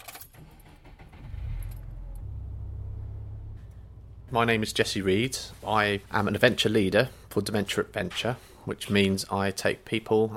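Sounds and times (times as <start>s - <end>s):
car engine being started: 0.4s - 7.3s
speech: 4.3s - 10.3s.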